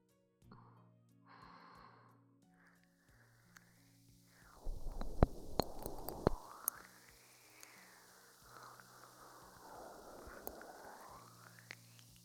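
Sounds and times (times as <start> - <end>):
bubbles crackling and popping: 4.5 - 12.2.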